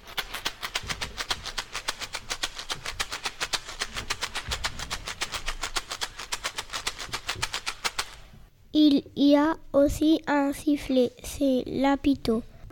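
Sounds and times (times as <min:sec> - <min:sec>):
chocalho shaker rattling: 0:00.0 - 0:08.4
speech: 0:08.8 - 0:12.5.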